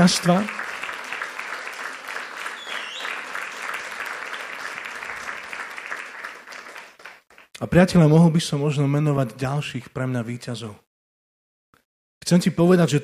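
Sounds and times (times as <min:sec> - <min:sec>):
speech: 0:00.0 - 0:00.6, 0:07.6 - 0:10.8, 0:12.2 - 0:13.0
audience applause: 0:00.0 - 0:07.5.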